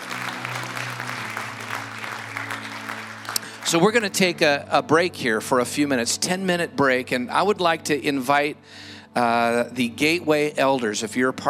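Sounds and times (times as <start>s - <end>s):
hands clapping: 0.0s - 4.3s
speech: 3.7s - 11.4s.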